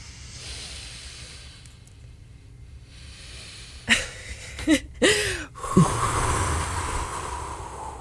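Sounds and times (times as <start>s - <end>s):
deep breath during a guided relaxation moment: 0.0s - 1.8s, 2.8s - 4.1s, 5.0s - 7.9s.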